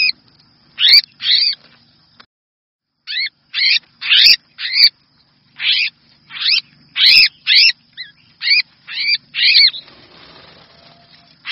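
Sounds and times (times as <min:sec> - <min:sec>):
red-whiskered bulbul distress call: 0:00.8 - 0:01.6, 0:03.1 - 0:05.0, 0:05.6 - 0:11.5.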